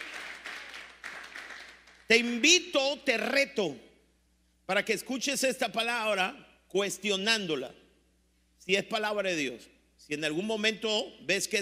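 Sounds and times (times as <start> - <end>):
audience applause: 0.0 - 2.0
speech: 2.1 - 3.9, 4.7 - 7.8, 8.7 - 11.6.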